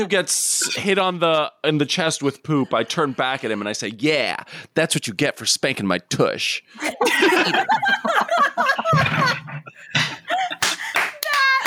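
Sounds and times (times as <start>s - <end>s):
speech: 0.0s - 10.1s
laughter: 2.2s - 4.0s, 6.8s - 11.6s
hand clapping: 10.6s - 11.6s.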